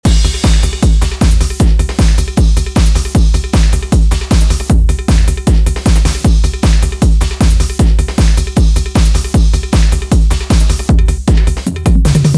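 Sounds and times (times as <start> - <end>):
techno music: 0.0 - 12.3.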